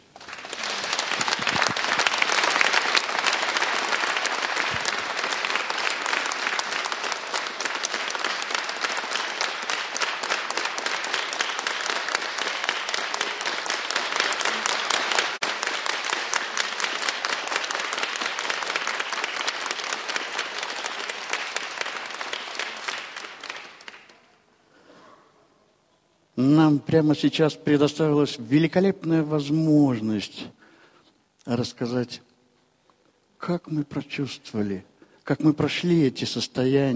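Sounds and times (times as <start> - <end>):
audience applause: 0.0 - 24.2
speech: 26.4 - 30.6, 31.5 - 32.3, 33.5 - 36.9.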